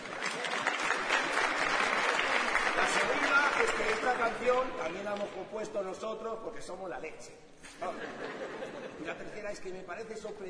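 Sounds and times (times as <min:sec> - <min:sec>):
audience applause at a live music performance: 0:00.0 - 0:04.7
speech: 0:03.0 - 0:10.4
laughter: 0:07.6 - 0:09.4.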